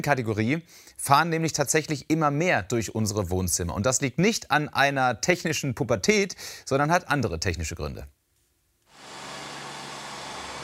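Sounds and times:
speech: 0.0s - 8.2s
five-year-old Neato robot vacuum cleaner vacuuming: 8.9s - 10.6s.

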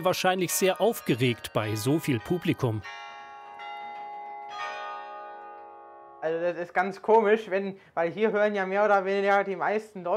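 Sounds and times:
speech: 0.0s - 3.0s, 6.2s - 10.1s
carillon bells playing over city centre: 0.0s - 6.7s.

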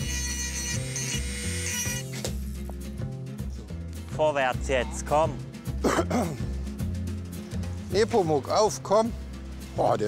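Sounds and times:
knives sharpened on a motorized grinder for hoof trimming: 0.0s - 2.4s
speech: 4.2s - 6.5s, 7.9s - 9.2s, 9.8s - 10.0s.

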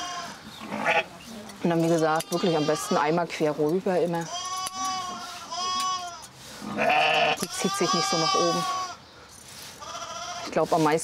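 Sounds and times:
sheep bleating in protest during shearing: 0.0s - 1.1s, 2.2s - 3.2s, 4.2s - 9.0s, 9.8s - 10.5s
speech: 1.6s - 4.4s, 6.8s - 8.8s, 10.6s - 11.0s.

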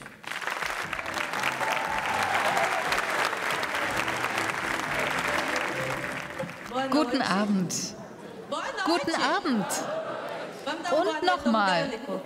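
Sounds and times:
audience applause: 0.0s - 7.0s
speech: 6.9s - 8.0s, 8.8s - 10.0s, 10.9s - 12.2s
laughter: 8.8s - 11.2s.

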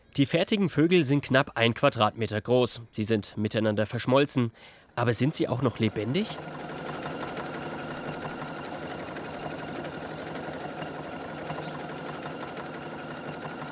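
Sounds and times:
speech: 0.2s - 6.8s
sewing machine running: 5.5s - 13.6s.

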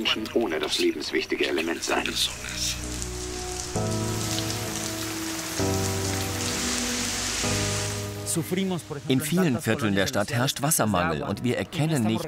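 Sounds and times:
speech: 0.0s - 2.9s, 3.8s - 4.3s, 8.4s - 12.2s
steady rain on a hard surface: 1.6s - 9.9s.

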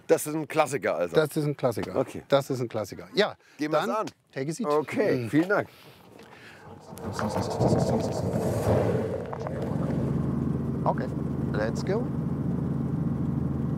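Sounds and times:
speech: 0.1s - 9.5s, 10.8s - 12.2s
Robinson helicopter engine and rotor: 10.1s - 13.7s.

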